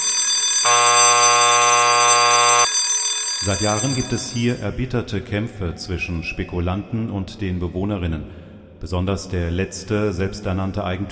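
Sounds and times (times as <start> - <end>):
siren blaring in a courtyard: 0.7 - 2.7
speech: 3.4 - 11.0.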